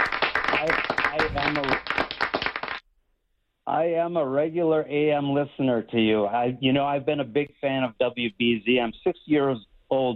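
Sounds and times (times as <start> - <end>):
round of applause: 0.0 - 2.8
speech: 0.6 - 1.9, 3.7 - 10.1.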